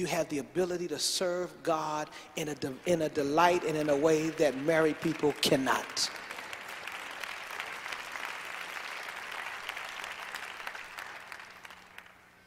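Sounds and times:
speech: 0.0s - 6.2s
audience applause: 3.4s - 12.4s.

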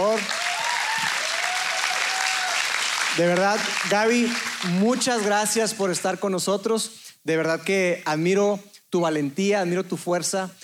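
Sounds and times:
audience applause: 0.0s - 5.3s
speech: 3.2s - 10.6s.

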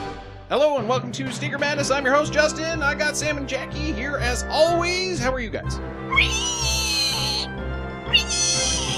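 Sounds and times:
speech: 0.5s - 6.6s
person imitating a dinosaur with a shrill screech: 6.1s - 7.5s, 8.1s - 8.9s.

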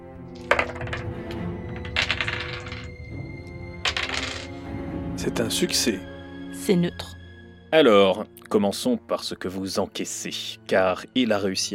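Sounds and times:
dice rattling and clattering across a hard surface: 0.4s - 3.0s, 3.8s - 4.6s
speech: 5.2s - 11.7s.

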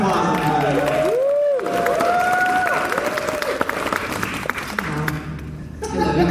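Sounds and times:
crowd applauding: 0.0s - 5.5s
high whoops and cheers: 0.4s - 3.6s
laughter: 5.8s - 6.3s.

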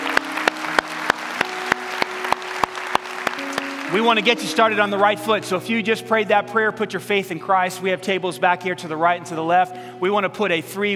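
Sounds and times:
audience clapping in rhythm: 0.0s - 5.1s
speech: 3.9s - 10.9s.

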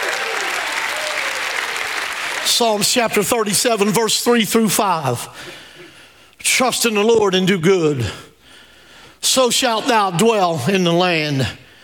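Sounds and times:
audience applause: 0.0s - 3.2s
speech: 2.5s - 5.6s, 6.4s - 8.3s, 9.2s - 11.6s.

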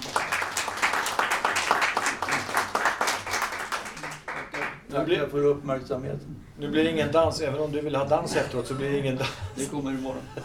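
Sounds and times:
audience applauding: 0.0s - 4.8s
speech: 5.0s - 10.4s.

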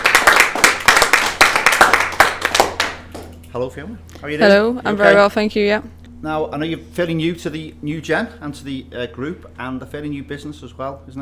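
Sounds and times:
round of applause: 0.0s - 3.3s
speech: 3.6s - 11.2s.

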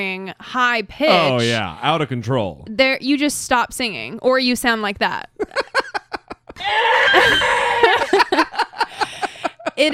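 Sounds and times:
speech: 0.0s - 5.8s, 6.6s - 8.1s, 9.8s - 9.9s
laughter: 5.4s - 9.9s
deer yelping, screaming and squealing: 6.6s - 8.0s.

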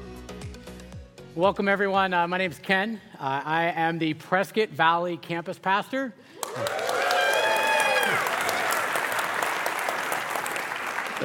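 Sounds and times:
speech: 1.4s - 6.9s
cheers and whoops: 6.4s - 9.4s
room full of people clapping: 6.4s - 11.2s.

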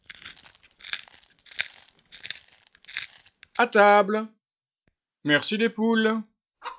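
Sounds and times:
pepper mill grinding pepper: 0.0s - 3.6s
speech: 3.6s - 4.4s, 5.2s - 6.3s.

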